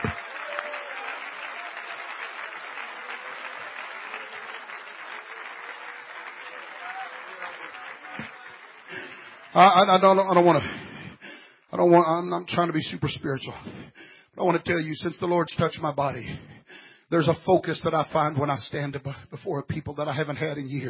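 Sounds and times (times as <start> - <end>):
audience clapping: 0.0 - 10.7
speech: 9.6 - 10.8, 11.8 - 16.5, 17.1 - 20.8.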